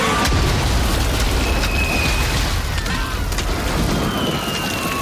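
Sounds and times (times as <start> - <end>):
thunderclap: 0.2 - 5.0.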